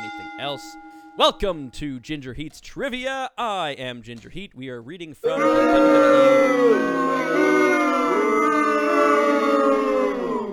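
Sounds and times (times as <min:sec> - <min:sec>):
speech: 0:00.4 - 0:07.7
wavering howl-like vocal tone in an audio drop: 0:05.3 - 0:10.5.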